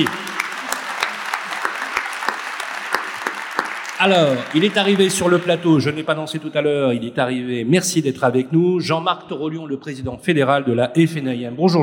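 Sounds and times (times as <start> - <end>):
speech: 0.0 - 0.2, 4.0 - 11.8
audience applause: 0.0 - 6.4.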